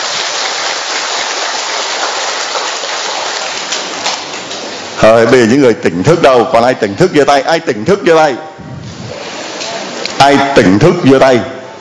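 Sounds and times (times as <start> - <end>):
big round of applause: 0.0 - 4.6
speech: 5.0 - 8.5, 10.2 - 11.6.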